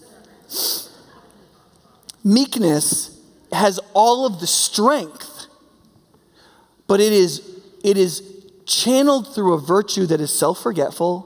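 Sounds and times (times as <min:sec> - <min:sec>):
stifled sneeze: 0:00.5 - 0:01.1
speech: 0:02.2 - 0:05.3, 0:06.9 - 0:11.2.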